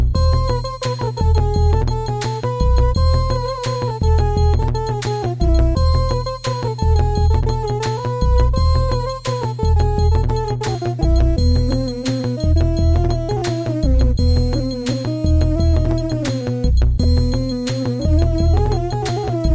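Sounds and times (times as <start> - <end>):
Arab pop music: 0.1 - 19.5.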